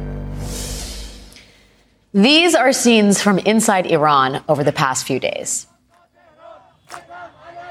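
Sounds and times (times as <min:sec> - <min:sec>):
speech: 0:02.1 - 0:05.7
large street protest crowd shouting chant-like cries: 0:05.7 - 0:07.6
street protest crowd clapping: 0:06.8 - 0:07.6.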